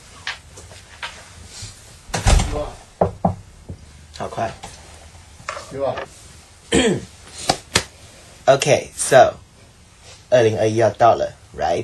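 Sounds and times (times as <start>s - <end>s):
door swinging shut with a heavy thud and rattle: 2.1s - 3.4s
speech: 4.3s - 4.7s, 5.7s - 6.1s, 6.7s - 7.1s, 8.5s - 9.4s, 10.3s - 11.8s.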